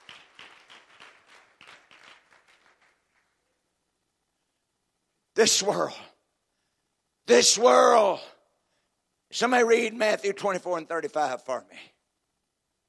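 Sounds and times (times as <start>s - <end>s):
audience clapping hands: 0.0s - 3.6s
speech: 5.4s - 6.1s, 7.3s - 8.3s, 9.3s - 11.9s.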